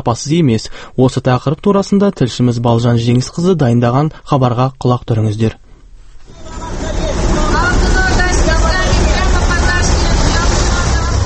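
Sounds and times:
speech: 0.0s - 5.6s
murmur of voices: 6.3s - 11.2s
street traffic and Chinese-made buses at a bus stop in Almaty: 6.3s - 11.2s.

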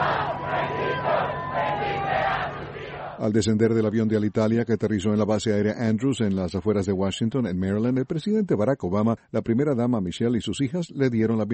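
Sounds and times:
crowd shouting: 0.0s - 3.2s
speech: 3.2s - 11.5s.

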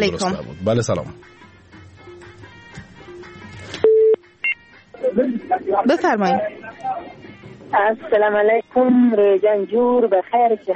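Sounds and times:
speech: 0.0s - 1.4s, 5.2s - 10.7s
faint sounds: 0.0s - 10.7s
telephone line tone as a call is connected: 3.8s - 4.2s.

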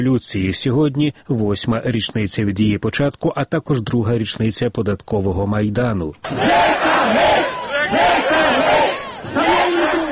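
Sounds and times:
speech: 0.0s - 8.3s
rally crowd chanting slogans: 6.2s - 10.0s.

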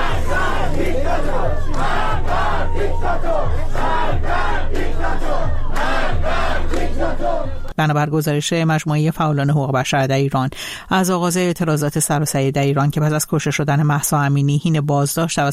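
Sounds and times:
crowd chanting protest slogans at a mourning ceremony in Iran: 0.0s - 7.7s
speech: 7.8s - 15.5s.

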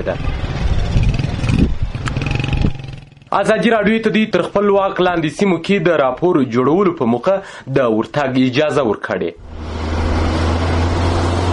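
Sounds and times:
speech: 0.0s - 0.5s, 3.3s - 9.7s
motorcycles and cars of armed Taliban fighters revving: 0.0s - 3.4s, 9.4s - 11.5s.

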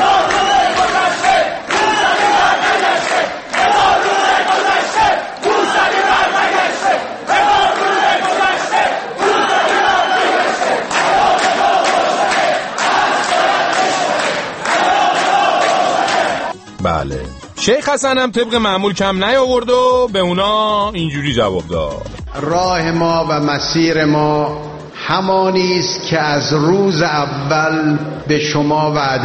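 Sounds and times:
large crowd chanting slogans in unison: 0.0s - 16.5s
speech: 17.6s - 29.2s.

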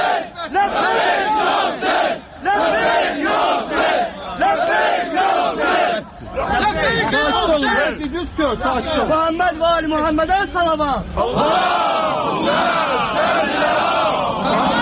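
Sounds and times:
crowd outside a courthouse chanting religious slogans: 0.0s - 6.9s, 11.2s - 14.8s
speech: 7.5s - 14.8s.

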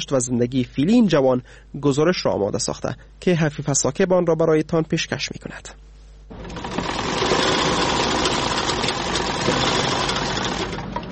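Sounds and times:
speech: 0.0s - 5.8s
sewing machine running: 6.3s - 11.0s.

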